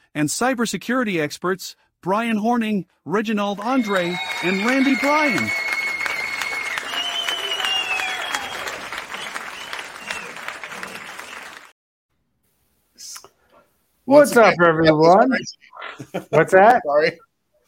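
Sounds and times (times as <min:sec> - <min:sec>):
speech: 0:00.2 - 0:05.6, 0:14.1 - 0:17.2
laughter: 0:03.6 - 0:05.5, 0:15.2 - 0:16.7
crowd applause sound effect: 0:03.6 - 0:11.7.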